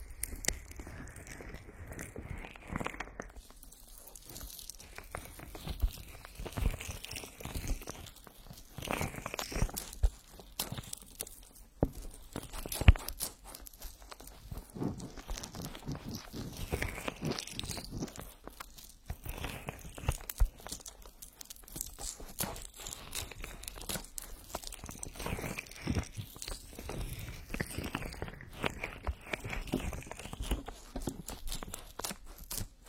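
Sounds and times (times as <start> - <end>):
oily rubbing on the ears: 0.2 - 32.8.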